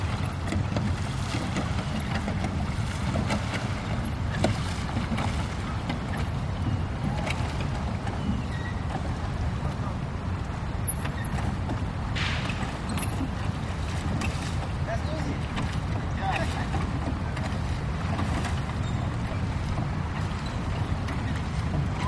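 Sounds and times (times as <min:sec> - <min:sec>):
lake ambience in a big city: 0:00.0 - 0:22.0.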